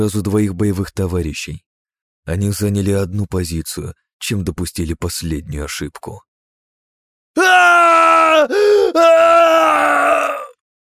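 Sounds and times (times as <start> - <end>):
speech: 0.0 - 6.3, 7.4 - 10.2
heart-rending human scream of pain: 7.4 - 10.6.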